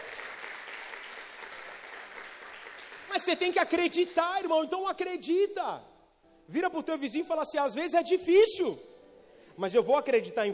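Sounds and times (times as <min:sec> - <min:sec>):
audience applause: 0:00.0 - 0:04.2
speech: 0:03.2 - 0:05.9, 0:06.5 - 0:08.9, 0:09.6 - 0:10.5.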